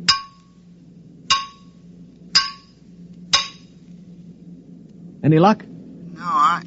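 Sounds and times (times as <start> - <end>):
metal cylinder clanging: 0.0 - 0.6, 1.3 - 3.8
low steady hum: 0.0 - 6.6
speech: 5.2 - 6.6.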